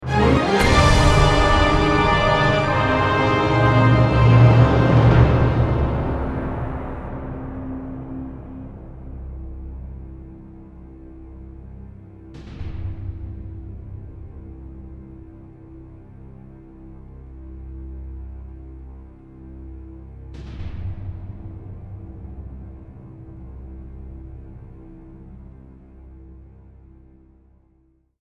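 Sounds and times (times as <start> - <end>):
musical sting with low resolve: 0.0 - 9.6.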